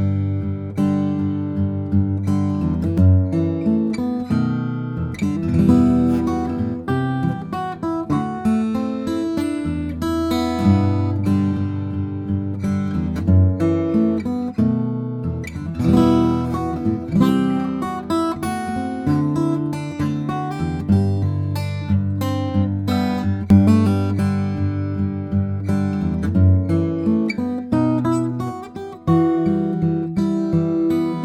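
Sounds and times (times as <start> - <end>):
guitar playing: 0.0 - 31.2.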